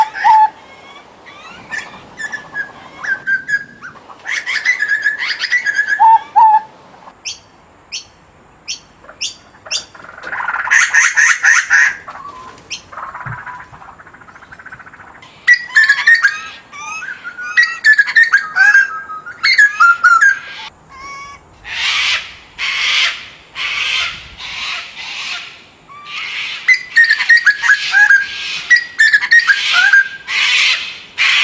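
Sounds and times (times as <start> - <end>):
Papuan butcherbird singing: 0.0 - 21.4, 23.0 - 31.0.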